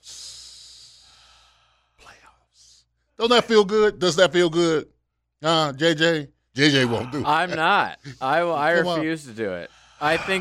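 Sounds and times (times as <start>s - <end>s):
breathy exhale: 0.0s - 2.0s
deep inhale: 0.0s - 2.0s, 9.7s - 10.0s
speech: 3.2s - 10.3s.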